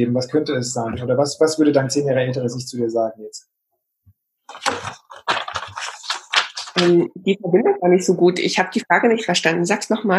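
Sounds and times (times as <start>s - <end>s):
speech: 0.0s - 3.5s, 6.8s - 10.1s
paper rustling: 4.5s - 7.1s.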